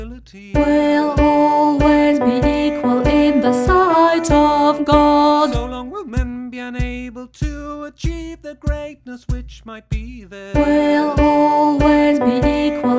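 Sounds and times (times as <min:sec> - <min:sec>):
choral music: 0:00.6 - 0:05.9, 0:10.6 - 0:12.9
alto singing: 0:00.6 - 0:06.9, 0:10.6 - 0:12.9.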